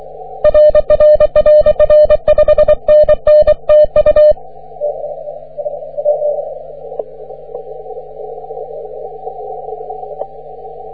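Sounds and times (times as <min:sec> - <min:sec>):
CW morse code on the 30 metre band: 0:00.5 - 0:04.4.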